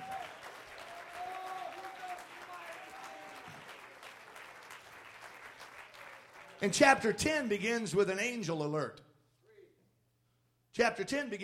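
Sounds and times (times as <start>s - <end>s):
people clapping: 0.0s - 7.3s
speech: 6.6s - 9.0s, 10.8s - 11.4s.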